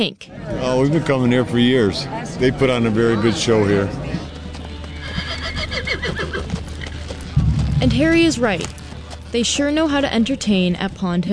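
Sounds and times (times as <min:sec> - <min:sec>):
speech: 0:00.0 - 0:04.0, 0:07.8 - 0:11.3
hoof clops on a hard surface: 0:03.7 - 0:11.1
horse whinnying: 0:04.9 - 0:07.2.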